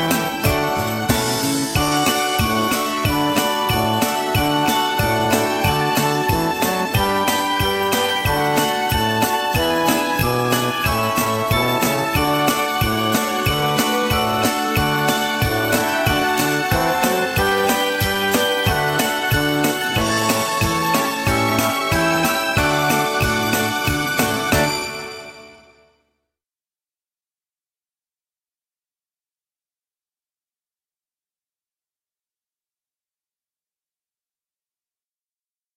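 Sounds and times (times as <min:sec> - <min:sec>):
traditional karaoke backing track without lead vocal: 0:00.0 - 0:24.9.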